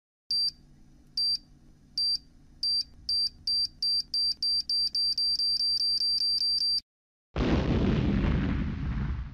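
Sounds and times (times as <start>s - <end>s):
machine exploding: 7.4s - 9.3s.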